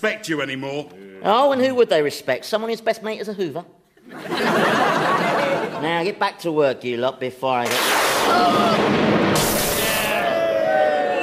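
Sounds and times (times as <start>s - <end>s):
speech: 0.0s - 4.8s, 5.8s - 9.6s
laughter: 4.0s - 5.9s
thunderbolt strike crackling blast: 7.7s - 10.2s.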